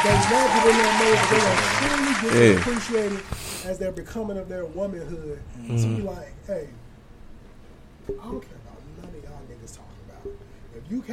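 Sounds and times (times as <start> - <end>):
hand clap applause sound effect: 0.0 - 3.4
speech: 0.0 - 6.8, 8.0 - 9.8, 10.9 - 11.1.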